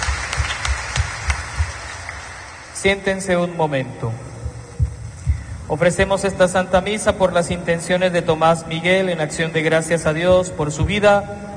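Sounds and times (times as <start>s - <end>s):
church congregation clapping for Jesus Christ at Catholic Mass: 0.0s - 2.8s
speech: 2.8s - 4.3s, 5.7s - 11.5s.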